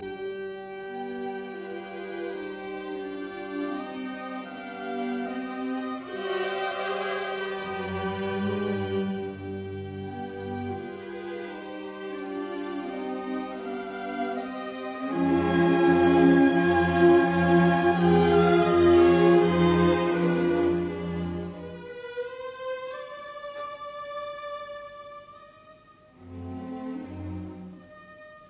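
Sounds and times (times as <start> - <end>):
piano concerto in E flat major andantino: 0.0 - 21.8.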